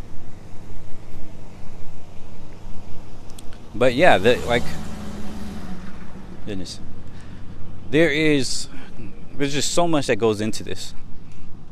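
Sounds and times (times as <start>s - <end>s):
lawnmower passing by: 3.7s - 8.6s
speech: 3.8s - 4.9s, 6.5s - 6.9s, 7.9s - 11.0s.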